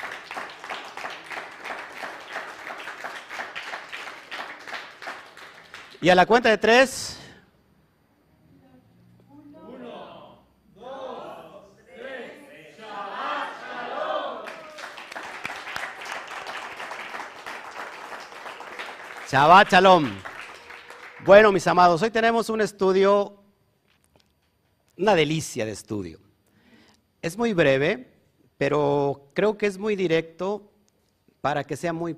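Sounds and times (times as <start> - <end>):
strong audience applause: 0.0 - 6.1, 14.2 - 21.7
speech: 6.0 - 7.2, 19.3 - 20.3, 21.2 - 23.4, 25.0 - 26.2, 27.2 - 30.7, 31.4 - 32.1.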